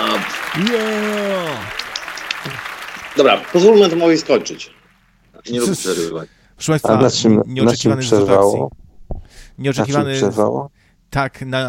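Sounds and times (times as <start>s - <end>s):
applause sound effect triggered by a show host: 0.0s - 5.2s
speech: 0.1s - 1.8s, 2.4s - 4.8s, 5.4s - 8.8s, 9.6s - 11.6s.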